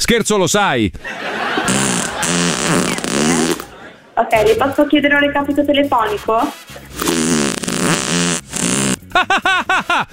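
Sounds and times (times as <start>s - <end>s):
speech: 0.0s - 3.1s, 4.2s - 6.8s
laughter: 1.0s - 4.4s, 9.0s - 10.1s
loud fart: 1.5s - 3.7s, 6.9s - 9.4s.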